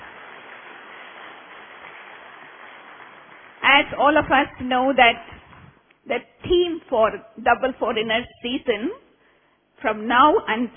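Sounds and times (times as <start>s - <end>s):
audience applause: 0.0s - 3.6s
speech: 3.8s - 5.4s, 6.1s - 9.0s, 9.8s - 10.7s.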